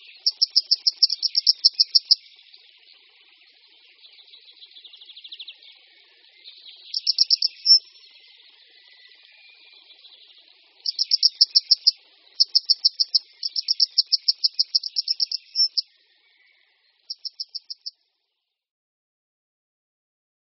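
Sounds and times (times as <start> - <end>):
faint high twittering: 0.0 - 18.0
grey wagtail calls: 0.1 - 2.8, 6.8 - 8.5, 10.8 - 15.8.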